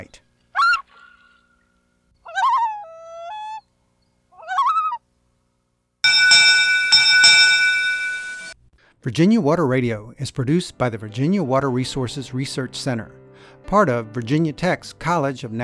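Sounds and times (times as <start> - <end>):
common loon wailing calls: 2.2 - 3.7, 4.4 - 5.0
ringing bell-like tone: 6.0 - 8.6
speech: 9.0 - 15.6.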